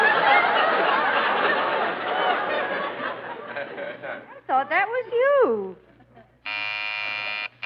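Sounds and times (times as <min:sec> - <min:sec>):
laughter: 0:00.0 - 0:04.5, 0:05.9 - 0:06.4
speech: 0:04.6 - 0:05.9
front door electric doorbell buzzing: 0:06.4 - 0:07.6.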